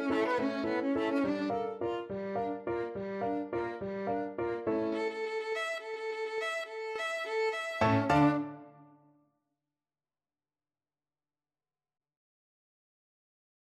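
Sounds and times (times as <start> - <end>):
piano: 0.0 - 8.9
violin: 0.0 - 8.9.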